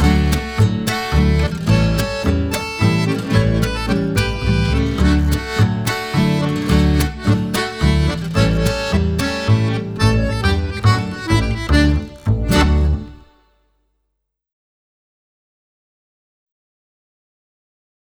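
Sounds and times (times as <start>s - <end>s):
backing music: 0.0s - 13.3s.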